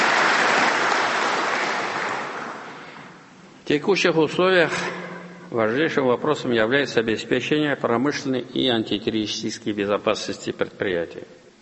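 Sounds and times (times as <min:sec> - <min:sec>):
audience applause for enterprises' work collectives: 0:00.0 - 0:02.9
speech: 0:03.7 - 0:11.4.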